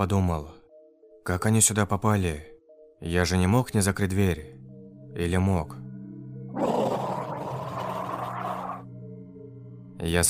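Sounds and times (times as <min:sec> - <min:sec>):
speech: 0:00.0 - 0:00.6, 0:01.2 - 0:04.6, 0:05.2 - 0:05.8, 0:10.0 - 0:10.2
furious deep roar from the depths of a prison: 0:06.6 - 0:08.8.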